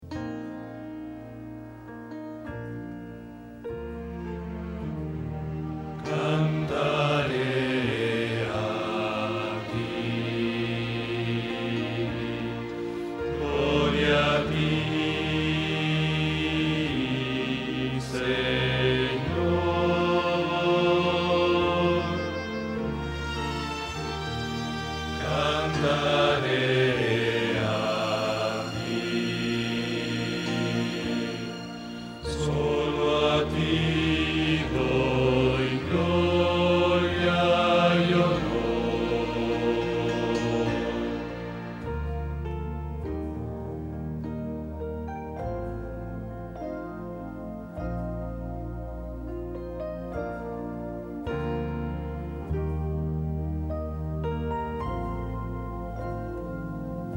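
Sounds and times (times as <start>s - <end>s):
bass: 0.0s - 57.1s.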